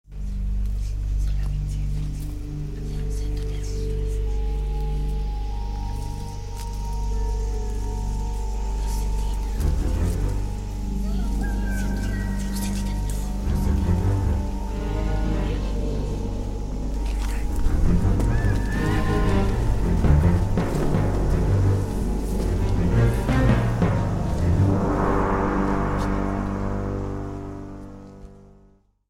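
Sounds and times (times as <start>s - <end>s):
suspense music: 0.1s - 29.0s.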